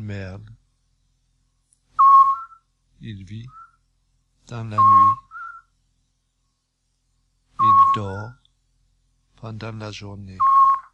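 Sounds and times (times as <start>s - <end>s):
speech: 0.1s - 0.6s, 3.0s - 3.6s, 4.5s - 5.3s, 7.6s - 8.4s, 9.4s - 10.5s
scops owl call: 2.0s - 2.7s, 4.8s - 5.7s, 7.6s - 8.4s, 10.4s - 10.9s.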